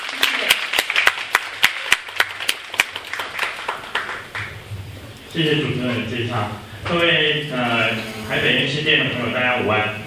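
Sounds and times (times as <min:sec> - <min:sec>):
audience applause: 0:00.0 - 0:04.6
speech: 0:05.4 - 0:10.0.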